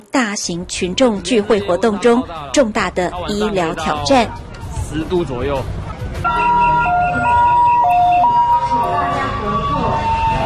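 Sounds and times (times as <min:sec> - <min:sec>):
speech: 0:00.3 - 0:06.6
ambulance siren approaching: 0:06.2 - 0:10.4.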